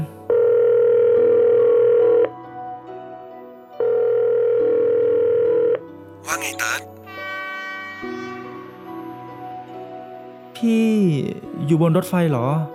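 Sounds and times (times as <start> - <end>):
electronic ringback tones on outgoing phone call: 0.3 - 2.4, 3.8 - 5.8
speech: 10.6 - 12.7.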